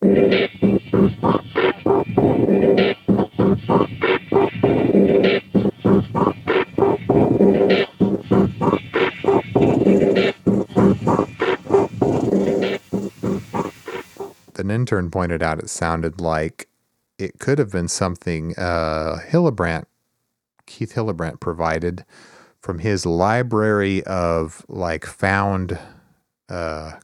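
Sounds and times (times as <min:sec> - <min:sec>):
wobbly mutator drone sped up 3x: 0:00.0 - 0:14.3
speech: 0:14.9 - 0:19.9, 0:20.7 - 0:27.0.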